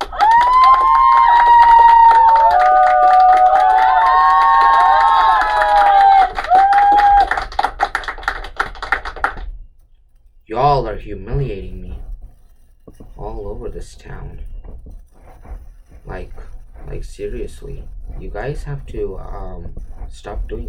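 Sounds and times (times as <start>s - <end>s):
audience clapping: 0.0s - 9.5s
speech: 13.8s - 15.1s, 17.0s - 20.6s.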